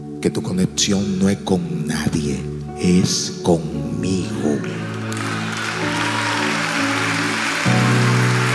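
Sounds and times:
speech: 0.2s - 4.9s
audience applause: 4.6s - 8.5s.

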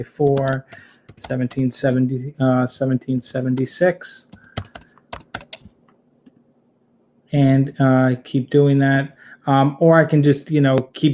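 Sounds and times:
speech: 0.0s - 4.4s, 7.3s - 11.1s
computer keyboard typing as a date is entered: 0.2s - 1.7s, 4.3s - 5.7s.

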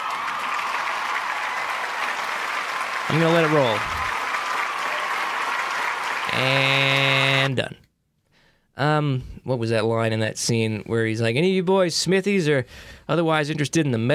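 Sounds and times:
clapping: 0.0s - 7.4s
speech: 3.1s - 4.0s, 6.4s - 7.8s, 8.8s - 14.1s.

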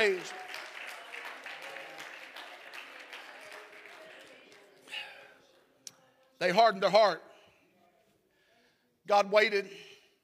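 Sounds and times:
speech: 0.0s - 0.4s, 6.4s - 7.3s, 9.1s - 9.8s
audience clapping hands: 0.0s - 5.2s.

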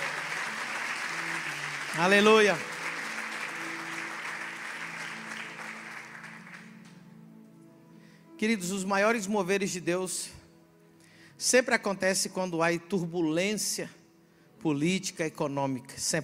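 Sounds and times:
audience applauding: 0.0s - 7.0s
speech: 1.9s - 2.7s, 8.4s - 10.4s, 11.4s - 14.0s, 14.6s - 16.2s.

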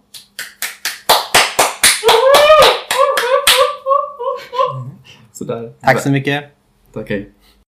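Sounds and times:
audience applause: 1.4s - 3.6s
high sustained cheers and whoops: 2.0s - 4.8s
speech: 5.4s - 7.6s.

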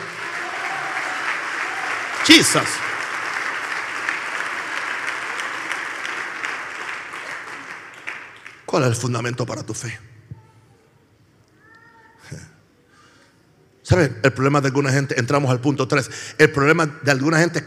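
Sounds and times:
audience applause: 0.0s - 8.7s
speech: 2.3s - 2.9s, 8.7s - 10.1s, 14.0s - 17.6s.

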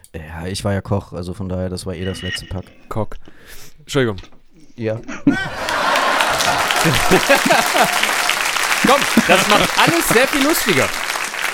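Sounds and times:
speech: 0.1s - 5.8s, 6.4s - 8.2s, 8.9s - 11.2s
laughter: 5.0s - 11.3s
sitcom-style canned studio applause with cheering from a soundboard: 5.5s - 11.5s.

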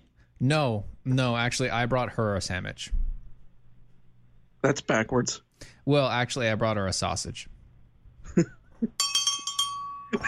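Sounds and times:
speech: 0.4s - 3.0s, 4.6s - 7.5s, 8.3s - 9.1s
bell ringing: 9.0s - 10.2s.

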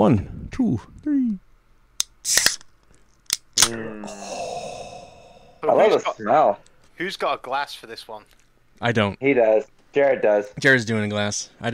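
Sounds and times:
speech: 0.0s - 1.4s, 2.2s - 2.5s, 3.7s - 4.4s, 5.6s - 11.7s
beer can cracking open: 2.0s - 3.7s.

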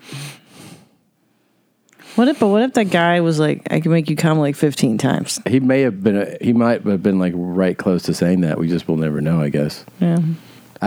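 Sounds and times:
heavy breathing: 0.0s - 1.0s, 9.9s - 10.8s
speech: 2.2s - 10.8s.

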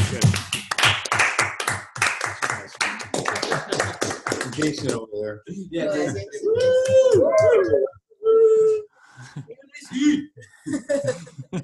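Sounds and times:
round of applause: 0.0s - 5.0s
laughter: 3.3s - 4.9s, 5.8s - 7.8s, 9.2s - 11.6s
speech: 4.6s - 8.0s, 9.2s - 11.2s.

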